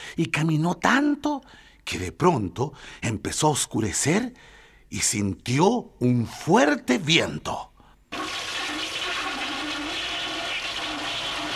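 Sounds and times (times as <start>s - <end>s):
speech: 0.2s - 8.4s
toilet flushing: 8.1s - 11.5s.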